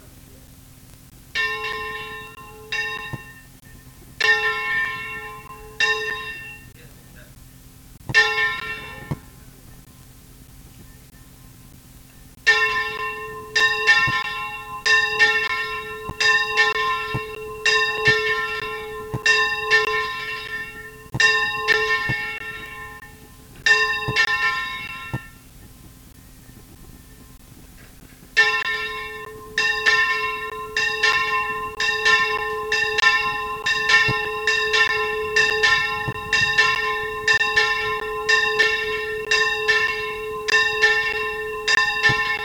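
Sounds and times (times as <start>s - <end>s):
bell: 1.4s - 7.1s, 8.1s - 9.2s, 12.5s - 25.4s, 28.4s - 42.4s.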